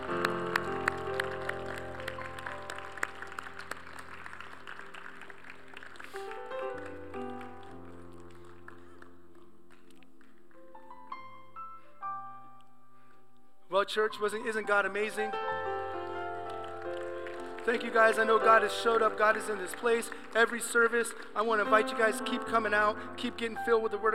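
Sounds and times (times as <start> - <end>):
crowd applauding: 0.0 - 10.9, 15.5 - 23.5
speech: 13.9 - 15.5, 17.6 - 24.1.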